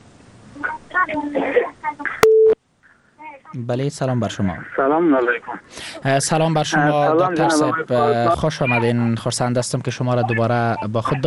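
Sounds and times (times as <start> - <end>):
speech: 1.0 - 2.1, 3.5 - 11.2
telephone call connecting electronic tone: 2.2 - 2.6.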